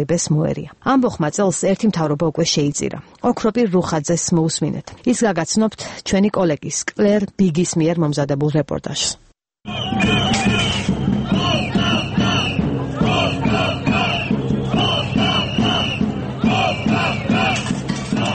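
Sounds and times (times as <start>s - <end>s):
speech: 0.0s - 9.2s
protesting students chanting slogans outside parliament in Sofia: 9.7s - 18.3s.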